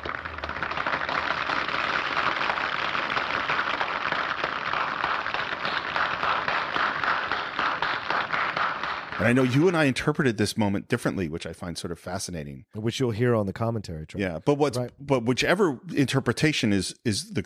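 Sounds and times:
opera audience applause from film: 0.0s - 10.0s
speech: 9.2s - 17.4s.

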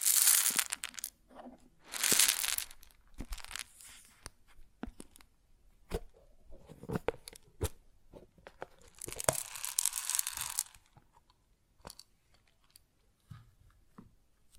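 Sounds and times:
grain shifting and pouring: 0.0s - 1.1s, 1.9s - 3.9s, 8.9s - 10.8s.

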